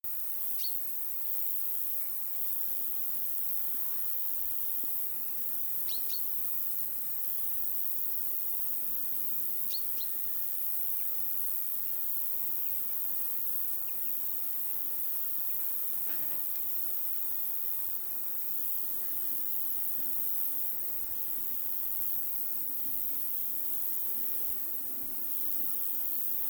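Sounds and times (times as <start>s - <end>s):
grasshopper song: 0.1s - 26.4s.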